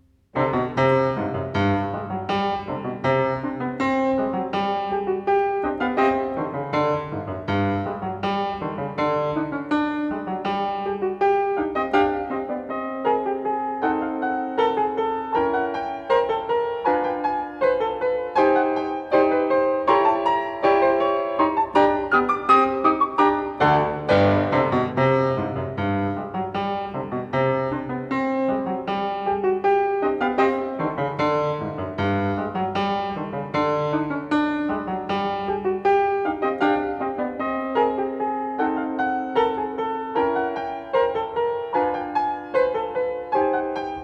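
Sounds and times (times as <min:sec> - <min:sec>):
piano variations in C major: 0:00.0 - 0:44.0.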